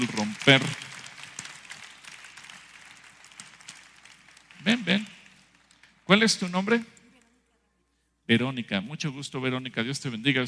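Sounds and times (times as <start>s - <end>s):
speech: 0.0s - 0.8s, 6.1s - 7.0s, 8.3s - 10.4s
audience applause: 0.0s - 6.8s.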